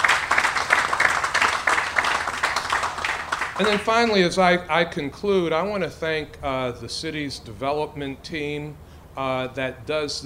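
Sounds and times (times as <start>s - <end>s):
audience applause: 0.0s - 4.2s
speech: 3.6s - 10.2s.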